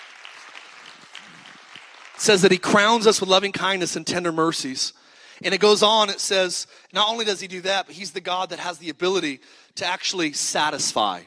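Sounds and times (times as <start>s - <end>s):
audience hand clapping: 0.0s - 3.0s
speech: 2.2s - 11.2s.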